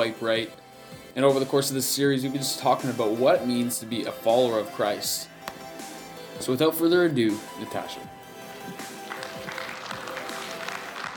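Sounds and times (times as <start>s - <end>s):
speech: 0.0s - 5.3s, 6.4s - 8.9s
audience clapping and snapping fingers: 8.6s - 11.1s.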